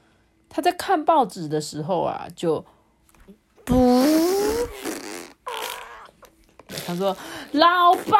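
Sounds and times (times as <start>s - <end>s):
speech: 0.5s - 3.8s, 6.9s - 8.1s
fart: 3.6s - 7.2s.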